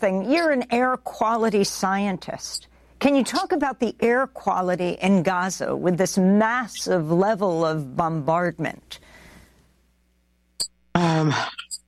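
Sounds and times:
speech: 0.0s - 9.1s, 11.0s - 11.6s
person coughing: 11.0s - 11.8s.

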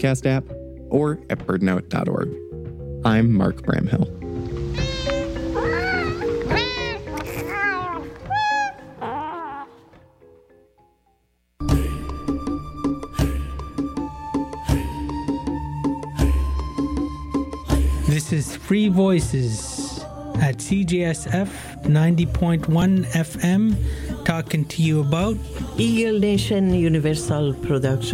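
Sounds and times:
speech: 0.0s - 2.4s, 3.0s - 4.2s, 18.4s - 19.8s, 20.4s - 28.1s
busy steady music: 0.0s - 28.1s
cat meowing: 4.7s - 9.8s.

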